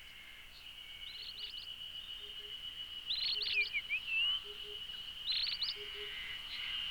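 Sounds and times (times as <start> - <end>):
Japanese grosbeak calling: 2.2 - 6.8.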